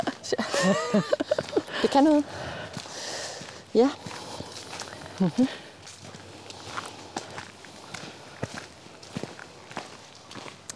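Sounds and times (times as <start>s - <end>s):
laughter: 0.0s - 1.8s
footsteps of a person walking through a forest: 0.0s - 10.7s
low steady outdoor noise: 0.0s - 10.7s
speech: 0.3s - 2.6s, 3.7s - 4.2s, 5.2s - 5.6s.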